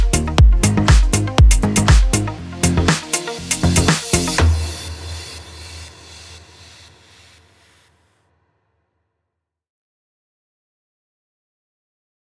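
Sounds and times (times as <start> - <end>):
pop music bed in F minor at 120 BPM: 0.0 - 5.9.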